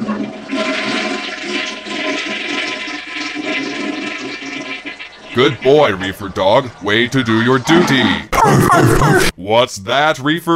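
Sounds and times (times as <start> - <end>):
toilet flushing: 0.0 - 8.2
speech: 5.4 - 10.5.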